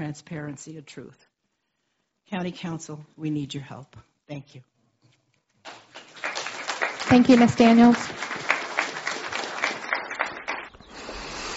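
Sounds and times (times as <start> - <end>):
speech: 0.0 - 1.3, 2.3 - 4.7, 7.1 - 8.4
crowd applauding: 5.7 - 11.3.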